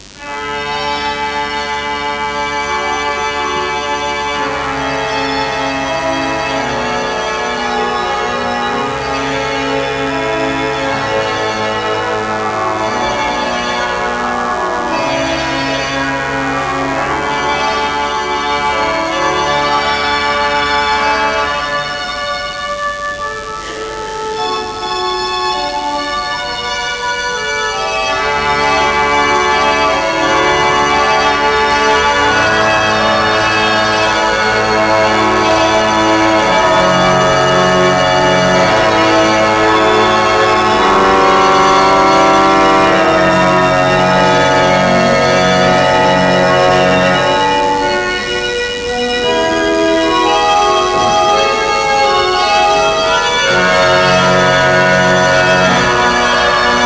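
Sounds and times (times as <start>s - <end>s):
chorale prelude in D major: 0.0s - 56.8s.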